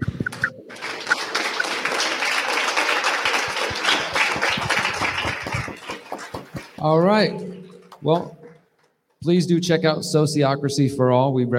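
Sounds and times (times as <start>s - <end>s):
audience applause: 0.3s - 8.3s
speech: 6.8s - 8.4s, 9.2s - 11.5s.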